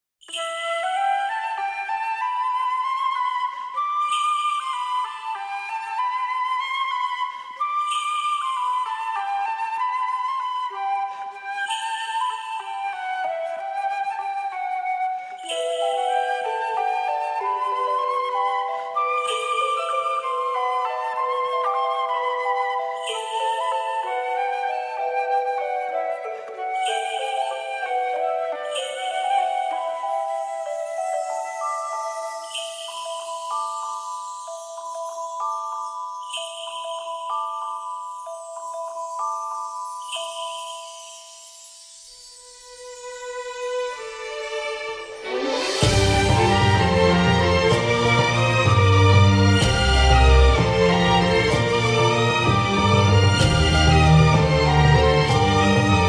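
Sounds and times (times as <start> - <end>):
background music: 0.2 - 56.0.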